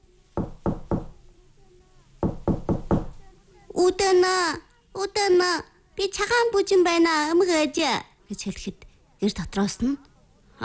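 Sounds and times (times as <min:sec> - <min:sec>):
knuckles knocking on a wooden house door: 0:00.4 - 0:01.2, 0:02.2 - 0:03.2
speech: 0:03.9 - 0:10.6.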